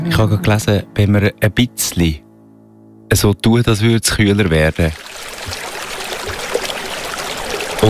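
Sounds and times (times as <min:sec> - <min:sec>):
speech: 0:00.2 - 0:02.3, 0:03.1 - 0:05.6
river flowing: 0:04.9 - 0:07.8.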